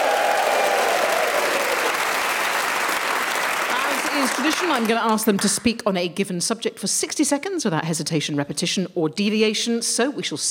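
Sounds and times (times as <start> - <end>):
audience cheering and whooping: 0.0 - 4.9
audience applause: 0.0 - 5.6
speech: 4.4 - 10.4.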